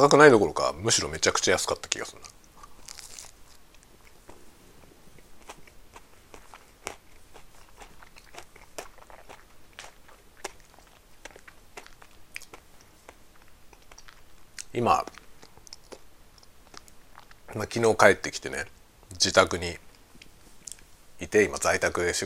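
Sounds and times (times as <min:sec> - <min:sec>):
speech: 0:00.0 - 0:02.3, 0:14.8 - 0:15.2, 0:17.5 - 0:19.8, 0:21.2 - 0:22.2
biting into crunchy chocolate ice cream monaka: 0:02.1 - 0:17.5.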